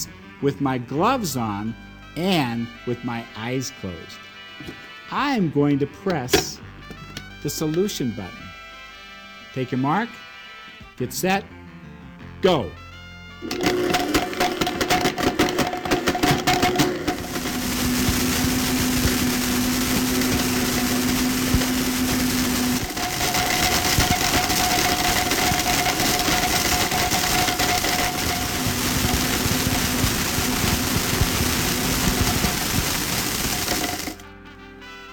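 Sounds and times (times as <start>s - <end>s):
speech: 0.0s - 6.7s, 7.4s - 8.4s, 9.6s - 10.2s, 11.0s - 11.6s, 12.4s - 12.8s, 13.4s - 13.8s
high-power blender grinding a puzzle: 13.4s - 34.3s
puzzle pieces rattling clatter in blender: 13.5s - 34.2s.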